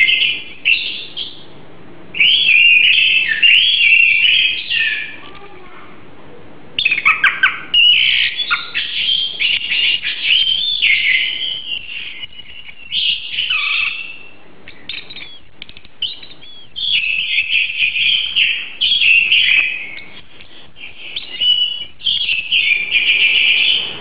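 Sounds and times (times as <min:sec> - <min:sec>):
Oriental magpie-robin song: 0:00.0 - 0:01.5, 0:02.1 - 0:05.5, 0:06.8 - 0:23.9.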